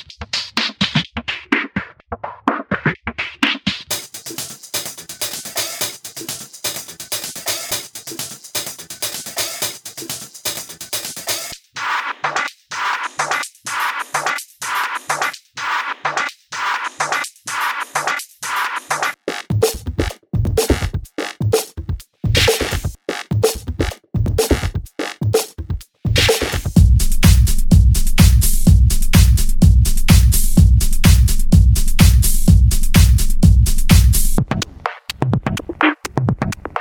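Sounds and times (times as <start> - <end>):
nu garage drums: 0.0 - 36.8.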